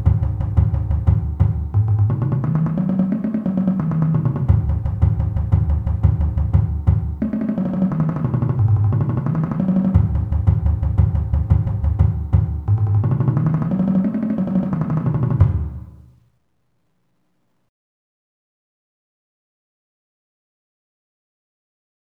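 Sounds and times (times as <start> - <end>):
slow marching bass drums playing split warm-ups: 0.0 - 16.0.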